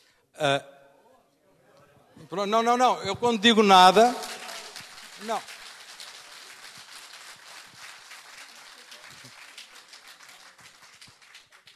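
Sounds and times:
speech: 0.4 - 0.7, 2.2 - 4.3, 5.2 - 5.6
audience clapping: 3.3 - 11.7.

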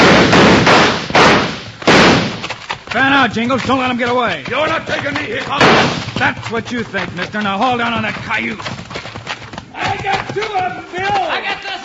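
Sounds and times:
gunshots in an old-time radio western drama: 0.0 - 3.8, 4.4 - 11.3
speech: 2.9 - 8.8, 10.0 - 11.8.

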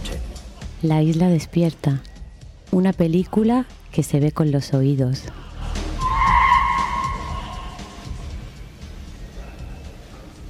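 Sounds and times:
speech: 0.8 - 2.1, 2.7 - 5.4
car tires screeching: 5.6 - 8.4.

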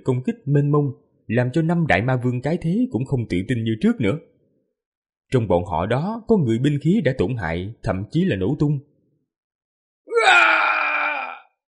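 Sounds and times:
speech: 0.0 - 4.3, 5.3 - 8.9, 10.2 - 10.6
defiant anguished human roar: 10.1 - 11.5.

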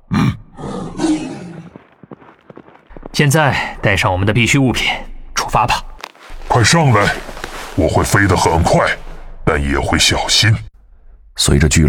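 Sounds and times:
big cat roaring: 0.1 - 1.7
speech: 3.2 - 5.9, 6.6 - 10.7, 11.4 - 11.8.

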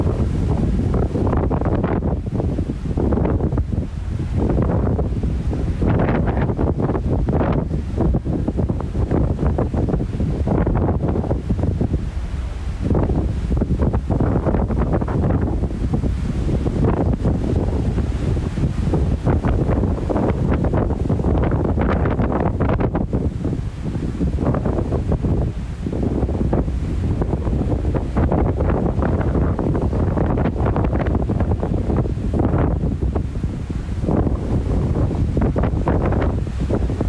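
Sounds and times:
strong wind in New Zealand buffeting the microphone: 0.0 - 37.0.

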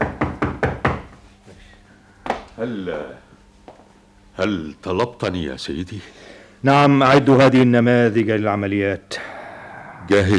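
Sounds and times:
knocking on a door: 0.0 - 1.2
speech: 2.6 - 3.3, 4.4 - 9.3, 10.1 - 10.3.

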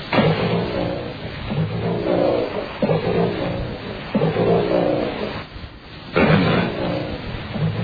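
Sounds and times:
recorded cry of alleged lake monster: 0.1 - 5.6, 6.2 - 7.8.

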